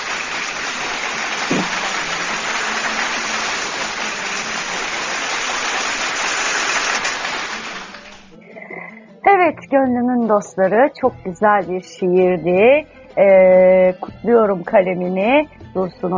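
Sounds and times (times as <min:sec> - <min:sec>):
applause after a poem recital: 0:00.0 - 0:08.3
speech: 0:09.7 - 0:16.1.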